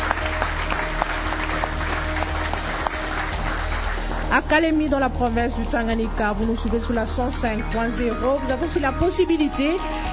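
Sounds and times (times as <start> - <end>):
audience applause: 0.0 - 4.6
speech: 4.3 - 10.0.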